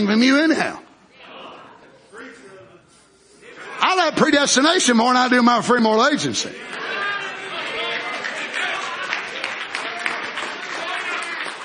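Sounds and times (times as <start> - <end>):
speech: 0.0 - 0.8, 3.9 - 6.9
audience clapping hands: 6.6 - 11.6.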